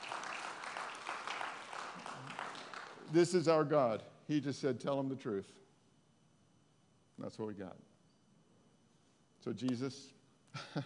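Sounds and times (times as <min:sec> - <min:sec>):
faint church congregation applause during a sermon: 0:00.0 - 0:03.2
speech: 0:03.1 - 0:05.6, 0:07.2 - 0:07.9, 0:09.4 - 0:10.8.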